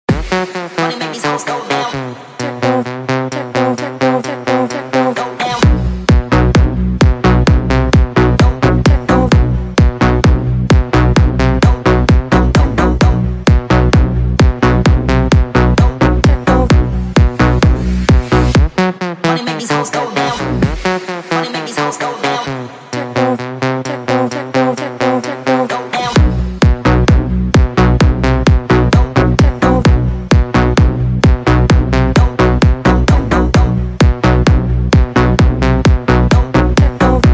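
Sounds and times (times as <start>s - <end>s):
techno music: 0.0s - 37.3s.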